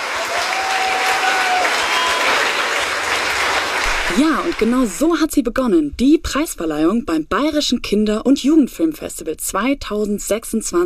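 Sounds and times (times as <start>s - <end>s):
audience applause at award ceremony: 0.0s - 4.9s
speech: 4.2s - 10.8s.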